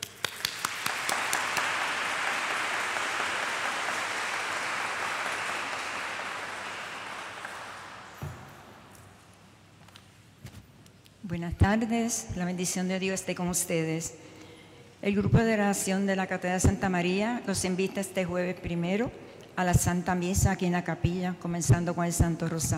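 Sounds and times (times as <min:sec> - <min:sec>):
applause: 0:00.0 - 0:08.9
speech: 0:11.3 - 0:14.3, 0:15.0 - 0:22.7.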